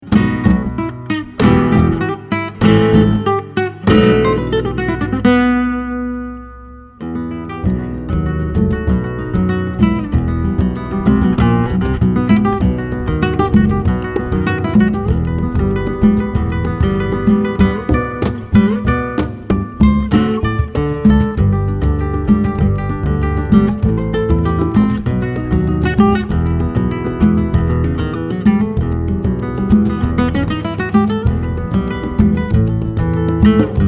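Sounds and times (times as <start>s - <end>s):
flamenco music: 0.0s - 33.8s.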